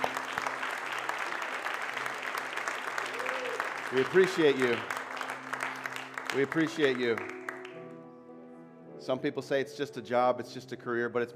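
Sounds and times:
audience applause: 0:00.0 - 0:07.8
speech: 0:03.9 - 0:05.0, 0:06.3 - 0:07.4, 0:09.0 - 0:11.3.

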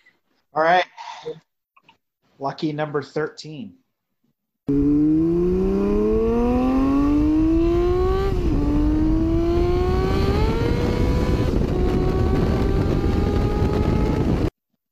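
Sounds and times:
speech: 0:00.5 - 0:01.4, 0:02.4 - 0:03.8, 0:04.7 - 0:05.0
Honda Civic Si VTEC engine revving hard and shifting up a gear: 0:04.7 - 0:14.5.

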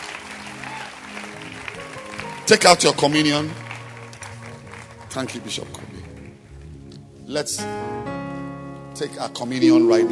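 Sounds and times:
audience clapping hands: 0:00.0 - 0:07.0
speech: 0:02.5 - 0:03.6, 0:05.2 - 0:05.9, 0:07.3 - 0:08.2, 0:09.0 - 0:10.0.

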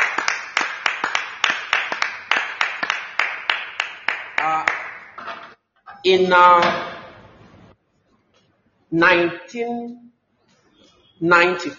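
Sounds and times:
audience clapping hands: 0:00.0 - 0:05.2
speech: 0:06.0 - 0:06.9, 0:08.9 - 0:10.1, 0:11.2 - 0:11.7.

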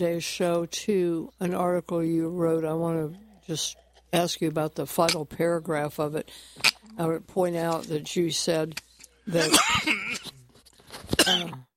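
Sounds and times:
speech: 0:00.0 - 0:10.0, 0:11.2 - 0:11.7
person coughing after swallowing coffee wrong: 0:09.3 - 0:10.4, 0:11.1 - 0:11.7.

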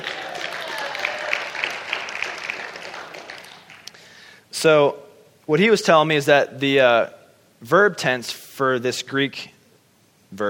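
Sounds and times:
crowd applauding: 0:00.0 - 0:04.3
speech: 0:04.6 - 0:09.6.

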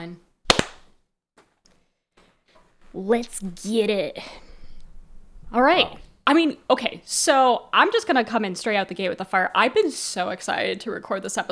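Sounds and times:
speech: 0:00.0 - 0:00.3, 0:02.9 - 0:04.4, 0:05.5 - 0:11.5
single hand clap for audio sync: 0:00.5 - 0:00.9.

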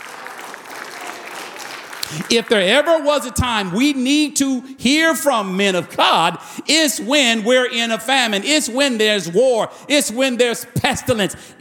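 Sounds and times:
people clapping: 0:00.0 - 0:03.0
speech: 0:02.1 - 0:11.6.

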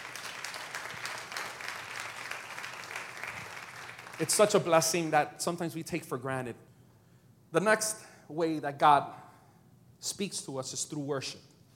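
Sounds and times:
audience clapping: 0:00.0 - 0:04.9
speech: 0:04.2 - 0:06.7, 0:07.5 - 0:09.2, 0:10.0 - 0:11.5.

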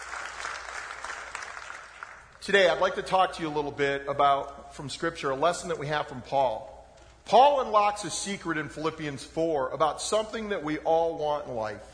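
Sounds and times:
audience applause: 0:00.0 - 0:02.4
speech: 0:02.4 - 0:11.9.

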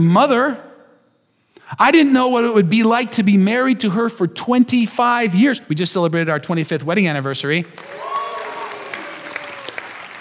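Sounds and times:
speech: 0:00.0 - 0:00.7, 0:01.7 - 0:08.2
audience applause: 0:07.7 - 0:10.1.

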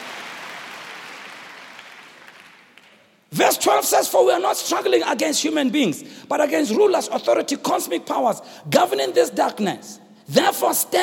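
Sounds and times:
lukewarm scattered applause from a crowd: 0:00.0 - 0:03.2
speech: 0:03.3 - 0:11.0.

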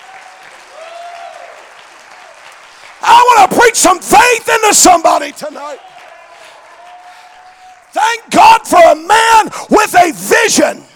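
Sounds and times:
audience clapping: 0:00.0 - 0:03.8, 0:05.4 - 0:08.0
speech: 0:03.4 - 0:05.9, 0:08.1 - 0:10.9.

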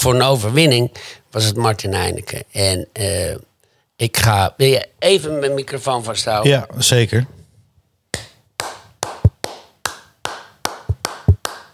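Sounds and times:
speech: 0:00.0 - 0:07.4
single person clapping: 0:08.2 - 0:11.7.

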